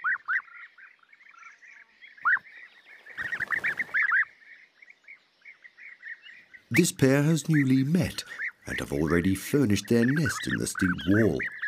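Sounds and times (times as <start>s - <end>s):
bee-eater calls: 3.1s - 4.3s, 6.8s - 11.6s
speech: 6.7s - 11.6s.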